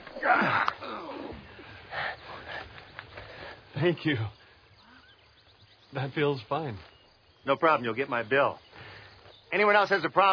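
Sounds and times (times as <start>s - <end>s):
deep breathing in and out: 1.3s - 3.7s, 8.7s - 9.2s
speech: 3.8s - 4.4s, 5.9s - 8.6s, 9.5s - 10.3s.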